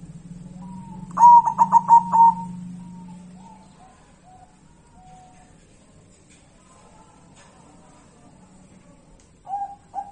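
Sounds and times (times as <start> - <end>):
zebra dove singing pulsed coos: 0.4 - 5.6, 9.4 - 10.0.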